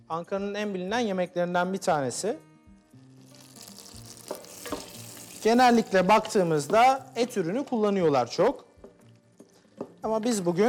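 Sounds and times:
speech: 0:00.1 - 0:02.5, 0:05.4 - 0:08.7, 0:10.0 - 0:10.6
butter melting and sizzling in a pan for Ankara tava with orzo: 0:03.1 - 0:07.2.

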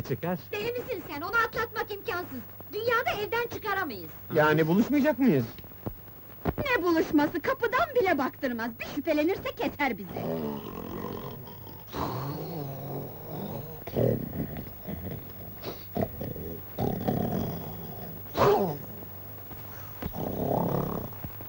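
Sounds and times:
speech: 0:00.0 - 0:05.6, 0:06.7 - 0:10.8
loud snoring: 0:10.1 - 0:19.1, 0:19.7 - 0:21.4.

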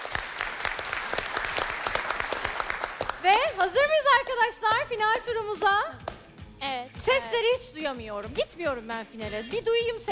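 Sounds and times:
audience applause: 0:00.0 - 0:04.0
speech: 0:03.2 - 0:10.1.

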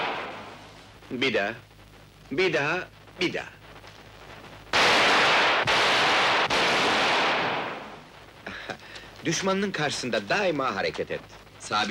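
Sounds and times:
gunshots being fired: 0:00.0 - 0:00.6, 0:04.7 - 0:08.1
speech: 0:01.1 - 0:01.7, 0:02.3 - 0:03.6, 0:09.2 - 0:11.8.

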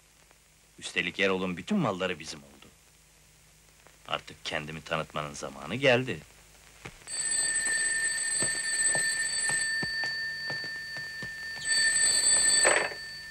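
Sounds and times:
speech: 0:00.8 - 0:02.6, 0:04.1 - 0:07.2
telephone ringing: 0:07.1 - 0:13.2.

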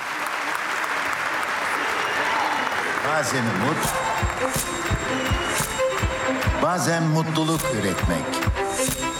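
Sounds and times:
strong applause: 0:00.0 - 0:07.0
speech: 0:03.0 - 0:05.8, 0:06.6 - 0:09.0.

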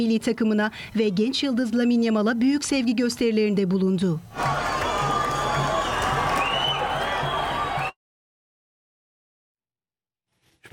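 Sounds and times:
speech: 0:00.0 - 0:04.7
Palestinian crowd roaring: 0:04.3 - 0:08.0.

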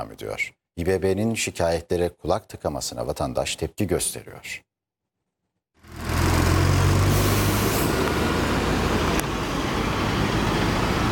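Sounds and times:
speech: 0:00.0 - 0:04.7
cars crossing the concrete Balıkyolu Bridge: 0:05.8 - 0:11.0.

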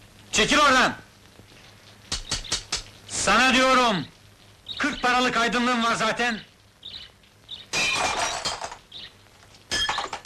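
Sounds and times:
speech: 0:00.4 - 0:01.0, 0:03.2 - 0:04.1, 0:04.8 - 0:06.5
window glass breaking: 0:07.7 - 0:08.8, 0:09.7 - 0:10.2
glass shards tinkling: 0:07.8 - 0:08.8, 0:09.7 - 0:10.2.

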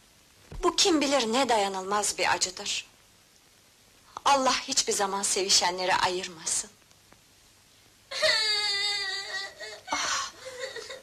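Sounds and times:
speech: 0:00.6 - 0:02.9, 0:04.3 - 0:06.8
infant crying and whimpering: 0:08.1 - 0:11.0.

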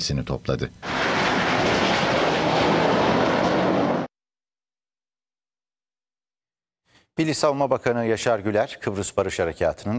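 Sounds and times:
speech: 0:00.0 - 0:01.0, 0:07.2 - 0:09.9
F-16 fighter jet flying an aerobatic display over Girne: 0:00.8 - 0:04.1.

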